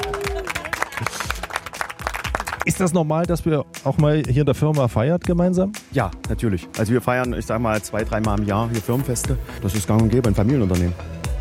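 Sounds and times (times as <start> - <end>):
company employees clapping: 0.0 - 2.9
speech: 2.6 - 11.2.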